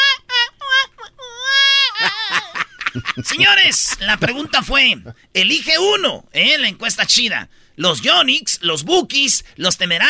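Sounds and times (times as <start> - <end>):
voice imitating a little girl crying: 0.0 - 4.4
laughter: 1.9 - 4.8
speech: 2.9 - 10.0.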